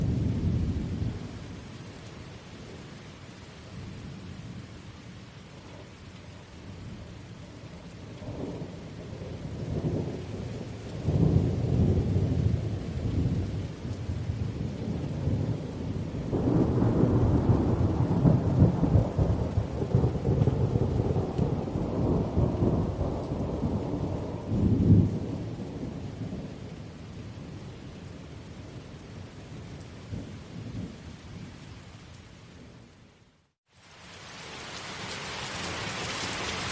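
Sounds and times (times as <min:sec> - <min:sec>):
steady heavy rain hiss in a thunderstorm: 0:00.0 - 0:36.6
long low rolling thunder: 0:08.2 - 0:26.7.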